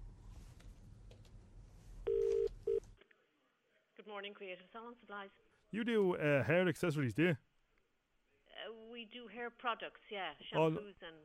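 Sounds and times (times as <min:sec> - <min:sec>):
telephone dialing electronic tones: 0:02.1 - 0:02.8
speech: 0:04.1 - 0:07.5, 0:08.7 - 0:11.2.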